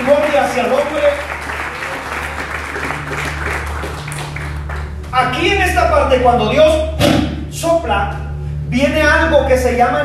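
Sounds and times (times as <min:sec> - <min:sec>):
audience applauding: 0:00.0 - 0:05.3
low sustained hum: 0:00.0 - 0:10.0
speech: 0:00.5 - 0:01.3, 0:05.2 - 0:10.0.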